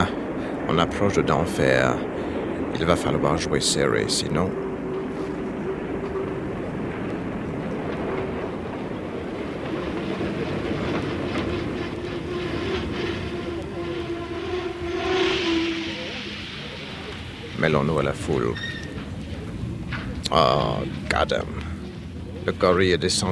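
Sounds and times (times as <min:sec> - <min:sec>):
train rumbling in a station: 0:00.0 - 0:23.3
speech: 0:00.7 - 0:04.7, 0:17.6 - 0:18.8, 0:20.3 - 0:21.7, 0:22.4 - 0:23.3
hiss or squeal: 0:13.0 - 0:19.0.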